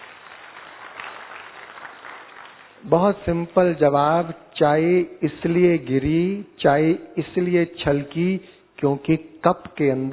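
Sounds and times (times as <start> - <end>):
audience applauding: 0.0 - 2.8
speech: 2.8 - 10.1.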